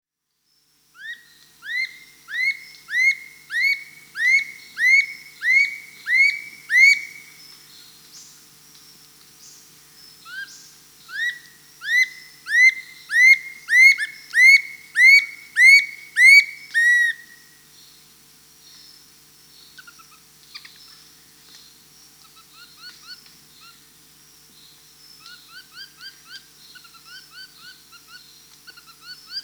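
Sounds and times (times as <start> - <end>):
Dull-capped attila whistling rising slurred notes in South America: 1.8 - 7.3, 12.0 - 17.2.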